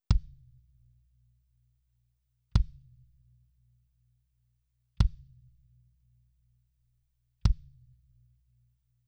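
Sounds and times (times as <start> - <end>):
kick drum: 0.0 - 0.7, 2.5 - 3.2, 5.0 - 5.7, 7.4 - 8.0.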